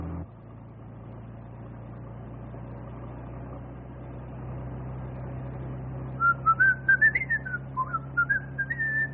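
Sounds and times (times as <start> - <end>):
person whistling a tune: 6.2 - 9.1.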